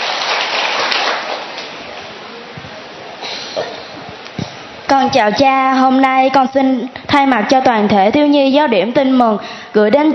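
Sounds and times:
audience applause: 0.0s - 1.8s
speech: 4.9s - 10.1s.

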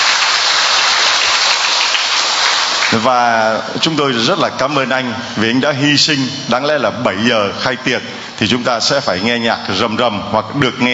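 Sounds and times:
audience applause: 0.0s - 3.2s
speech: 3.0s - 10.9s.

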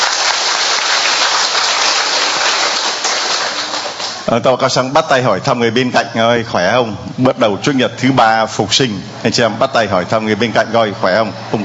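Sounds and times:
audience applauding: 0.0s - 4.4s
speech: 4.3s - 11.6s.

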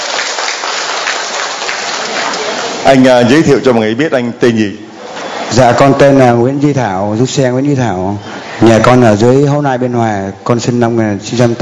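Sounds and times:
group applauding a man introduced to speak: 0.0s - 3.1s
speech: 2.8s - 4.9s, 5.5s - 11.6s.

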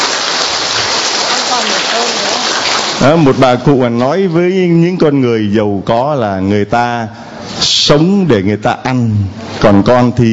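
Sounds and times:
audience applauding loudly: 0.0s - 3.5s
speech: 3.0s - 10.3s.

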